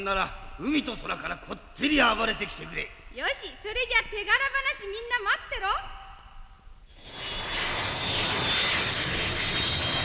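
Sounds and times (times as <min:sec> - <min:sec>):
speech: 0:00.0 - 0:06.0
airplane engines roaring in flight before landing: 0:07.0 - 0:10.0.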